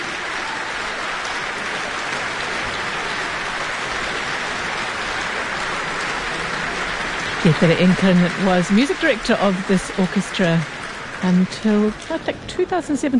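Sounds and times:
concert crowd applauding: 0.0s - 13.1s
speech: 7.4s - 13.1s.

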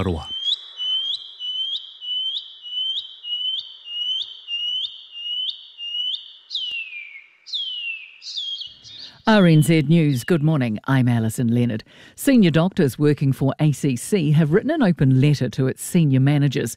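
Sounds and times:
speech: 0.0s - 0.3s, 9.3s - 16.7s
shining cuckoo calling: 0.0s - 10.5s.

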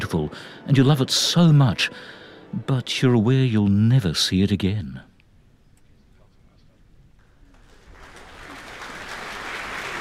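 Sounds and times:
speech: 0.1s - 5.1s
concert audience applauding: 7.4s - 9.9s.

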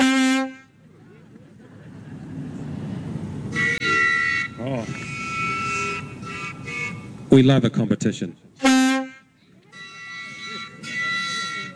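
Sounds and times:
steam launch whistle: 0.0s - 0.8s, 2.0s - 7.4s, 8.6s - 11.7s
laughter: 0.0s - 11.7s
speech: 7.3s - 8.7s.

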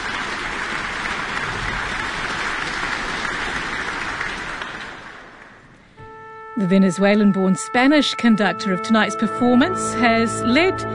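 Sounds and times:
concert audience applause: 0.0s - 5.8s
speech: 6.6s - 10.9s.

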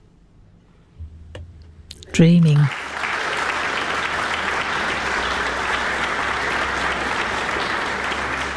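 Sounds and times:
speech: 2.1s - 2.9s
concert audience applause: 2.7s - 8.5s.

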